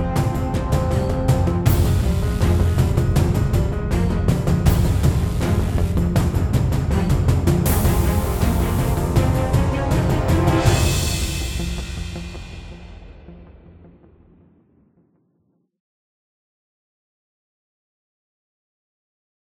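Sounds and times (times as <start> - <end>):
background music: 0.0 - 14.9.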